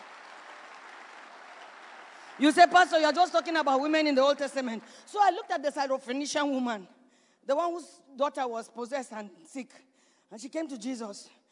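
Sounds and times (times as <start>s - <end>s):
audience applause: 0.0s - 5.2s
speech: 2.4s - 11.4s.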